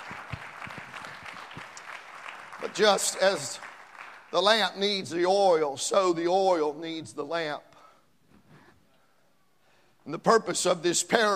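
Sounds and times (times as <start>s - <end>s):
audience clapping hands: 0.0s - 5.1s
speech: 2.6s - 3.7s, 4.3s - 7.7s, 10.1s - 11.3s.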